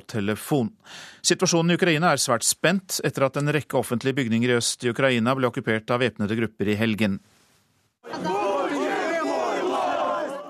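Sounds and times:
speech: 0.1 - 7.3, 8.0 - 8.4
protest crowd shouting outside parliament: 8.0 - 10.4.

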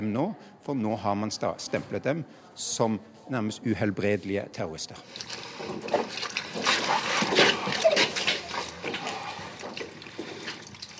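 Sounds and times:
speech: 0.0 - 6.0
waterboarding, water poured over a person: 5.1 - 10.9.

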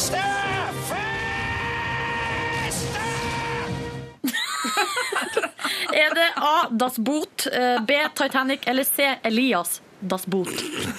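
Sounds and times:
loud sustained scream from a film: 0.0 - 4.0
laughter: 4.2 - 6.6
speech: 6.0 - 10.9.

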